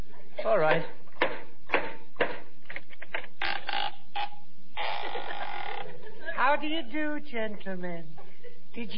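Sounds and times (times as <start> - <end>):
speech: 0.4 - 1.0, 6.4 - 8.2, 8.8 - 8.9
door creaking open: 3.0 - 5.9.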